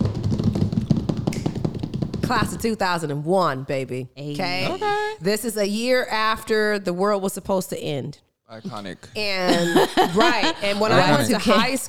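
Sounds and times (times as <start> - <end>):
drum roll tapped by hand on a hard surface: 0.0 - 2.8
speech: 2.3 - 11.8
laughter: 4.4 - 5.2, 8.6 - 11.8.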